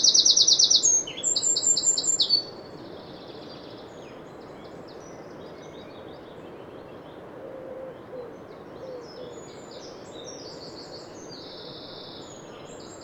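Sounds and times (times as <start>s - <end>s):
Eurasian wren song: 0.0s - 7.0s, 8.2s - 13.0s.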